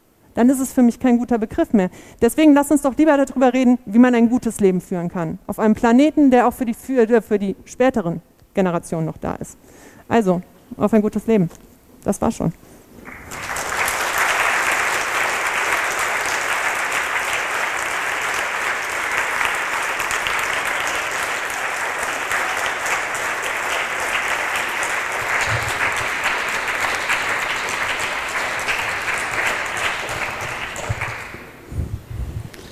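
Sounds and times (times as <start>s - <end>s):
speech: 0.4s - 13.5s
audience applause: 13.1s - 31.6s.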